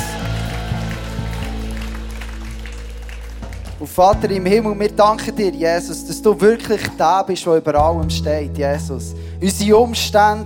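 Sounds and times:
audience applause: 0:00.0 - 0:04.2
speech: 0:03.8 - 0:10.4.

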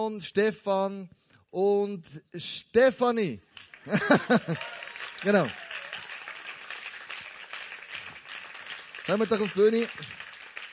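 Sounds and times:
speech: 0:00.0 - 0:05.7, 0:09.1 - 0:10.2
audience applause: 0:03.6 - 0:10.7
laughter: 0:03.8 - 0:06.2.

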